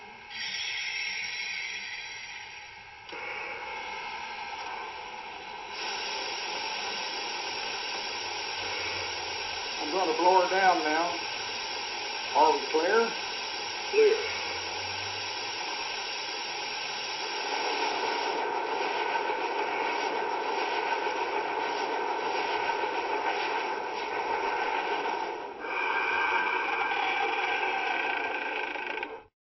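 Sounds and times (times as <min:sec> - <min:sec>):
trains: 0:00.0 - 0:29.3.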